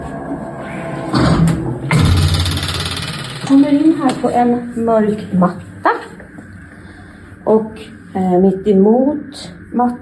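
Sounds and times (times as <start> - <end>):
automatic door opener humming: 0.7 - 4.7
speech: 4.2 - 5.7, 7.5 - 10.0.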